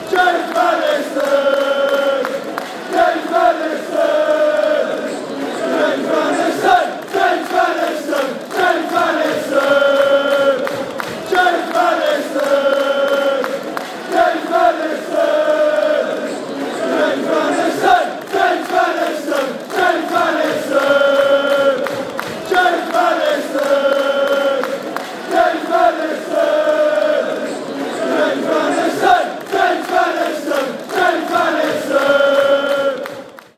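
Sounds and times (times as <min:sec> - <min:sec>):
players and fans chanting: 0:00.0 - 0:33.5.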